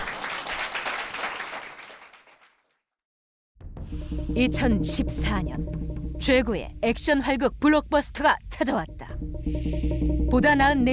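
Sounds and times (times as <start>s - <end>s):
crowd applause: 0.0s - 2.6s
speech: 4.0s - 10.9s.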